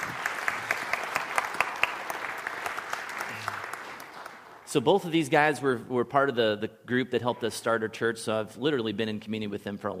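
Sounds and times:
audience applause: 0:00.0 - 0:04.7
speech: 0:04.7 - 0:09.9.

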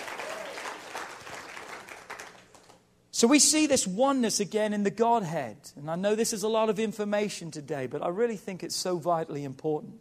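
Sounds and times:
audience clapping: 0:00.0 - 0:02.8
speech: 0:03.2 - 0:09.9.

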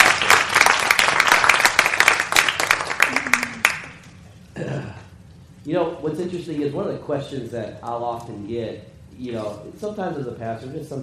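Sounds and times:
crowd applauding: 0:00.0 - 0:04.0
speech: 0:05.7 - 0:11.0.

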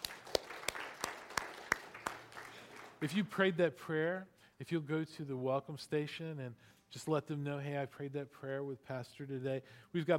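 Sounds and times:
church congregation clapping: 0:00.0 - 0:03.3
speech: 0:03.0 - 0:10.1.

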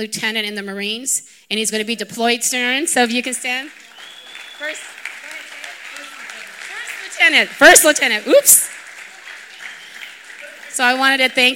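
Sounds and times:
speech: 0:00.0 - 0:03.9, 0:04.6 - 0:05.0, 0:07.3 - 0:08.8, 0:10.8 - 0:11.5
crowd applause: 0:03.1 - 0:11.5
faint voices whooping: 0:03.8 - 0:11.5.

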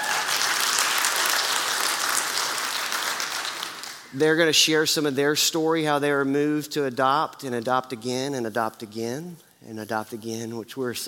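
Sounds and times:
audience clapping: 0:00.0 - 0:04.2
speech: 0:04.1 - 0:11.0.

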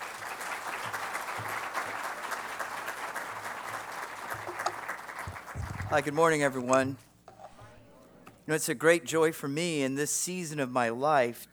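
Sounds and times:
audience applause at a church gathering: 0:00.0 - 0:06.3
speech: 0:05.9 - 0:07.1, 0:08.5 - 0:11.5.

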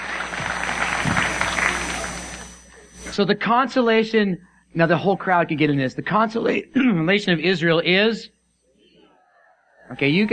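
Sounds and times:
audience applause: 0:00.0 - 0:02.6
speech: 0:03.2 - 0:08.4, 0:09.9 - 0:10.3.

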